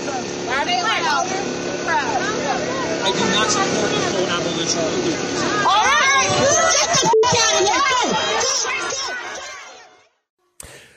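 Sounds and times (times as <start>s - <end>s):
speech: 0.6s - 7.7s
crowd booing Minneapolis Mayor Jacob Fry off stage: 5.4s - 10.0s.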